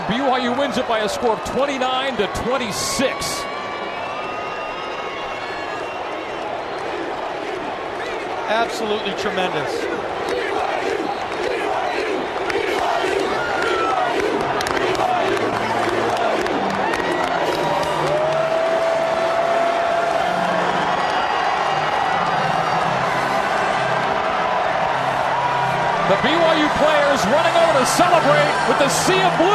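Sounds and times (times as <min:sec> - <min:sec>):
large stadium crowd cheering: 0:00.0 - 0:29.5
speech: 0:00.1 - 0:03.5, 0:08.5 - 0:10.4, 0:26.2 - 0:29.5.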